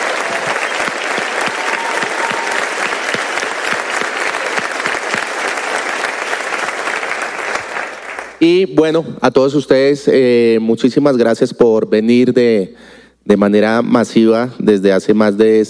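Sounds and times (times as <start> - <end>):
audience applause: 0.0 - 8.4
speech: 8.4 - 15.6.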